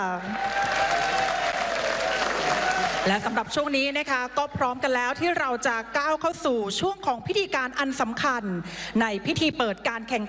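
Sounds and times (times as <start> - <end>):
speech: 0.0 - 0.5, 3.0 - 10.2
crowd applause for athletes: 0.2 - 3.3.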